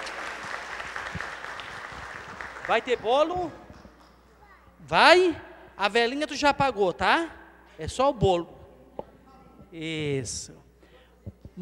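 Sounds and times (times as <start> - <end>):
group applause: 0.0 - 4.0
speech: 2.7 - 3.6, 4.8 - 8.6, 9.7 - 10.6.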